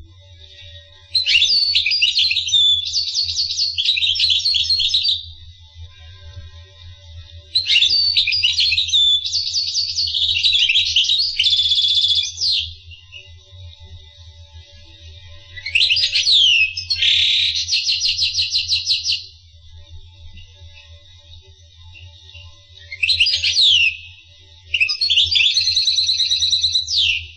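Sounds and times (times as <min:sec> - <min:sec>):
finch song: 0:00.4 - 0:05.3, 0:07.5 - 0:13.3, 0:15.5 - 0:19.3, 0:22.0 - 0:27.3.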